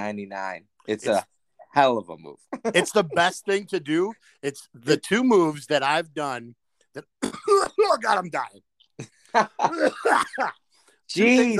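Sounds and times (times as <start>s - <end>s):
speech: 0.0s - 11.5s
harsh raspy coughing: 7.0s - 8.0s, 9.6s - 10.7s.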